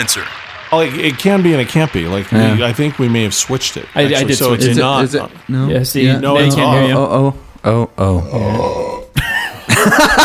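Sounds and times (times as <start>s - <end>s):
speech: 0.0s - 8.9s, 9.8s - 10.2s
loud burp: 7.6s - 9.8s
laughter: 9.0s - 10.2s.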